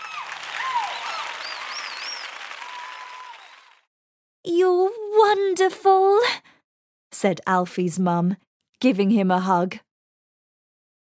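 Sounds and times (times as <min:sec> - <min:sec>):
applause: 0:00.0 - 0:03.9
whistling: 0:00.6 - 0:03.7
speech: 0:04.4 - 0:06.4, 0:07.2 - 0:09.9.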